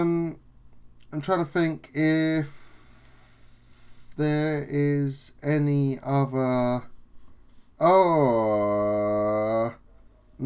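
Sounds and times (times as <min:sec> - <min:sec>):
speech: 0:01.1 - 0:02.6, 0:04.2 - 0:06.9, 0:07.8 - 0:09.8
man groaning: 0:07.8 - 0:09.8.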